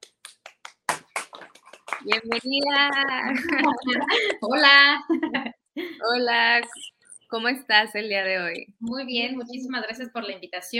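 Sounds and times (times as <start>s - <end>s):
audience applause: 0.0s - 4.4s
laughter: 1.2s - 6.0s
speech: 2.0s - 10.7s.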